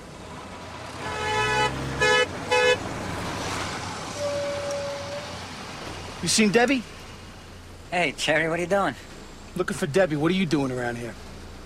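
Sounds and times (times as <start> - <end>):
car horn beeping: 1.0 - 2.8, 4.1 - 5.4
speech: 6.2 - 7.0, 7.9 - 11.3.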